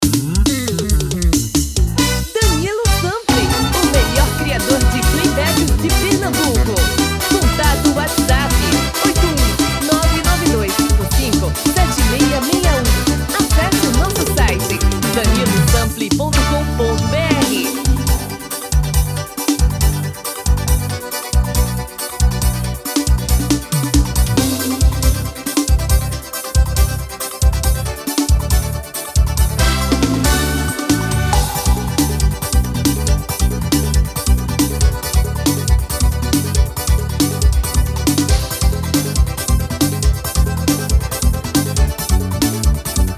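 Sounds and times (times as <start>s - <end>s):
forro music: 0.0s - 43.1s.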